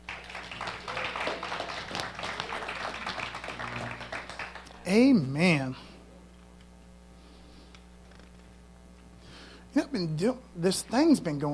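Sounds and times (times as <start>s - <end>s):
audience clapping: 0.0s - 5.2s
speech: 4.9s - 5.9s, 10.0s - 11.5s.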